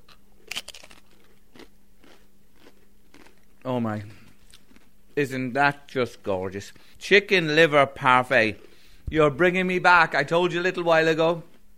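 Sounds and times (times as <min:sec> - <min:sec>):
soft crunch of biting into chicken liver parfait: 0:00.0 - 0:05.2
faint chewing rustle: 0:00.5 - 0:05.2, 0:08.2 - 0:08.9
speech: 0:03.7 - 0:04.2, 0:05.2 - 0:11.5.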